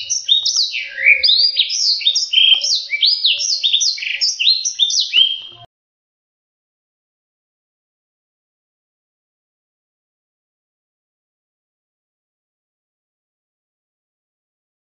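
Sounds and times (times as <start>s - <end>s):
black-throated seedeater singing a long rapid warble: 0.0s - 5.7s.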